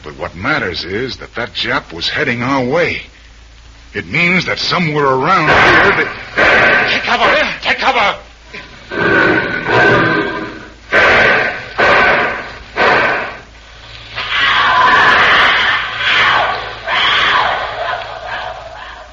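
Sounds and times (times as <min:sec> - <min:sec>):
speech: 0:00.0 - 0:03.1, 0:03.9 - 0:08.2
tiger screaming: 0:05.5 - 0:07.4, 0:08.9 - 0:13.5, 0:14.1 - 0:19.1.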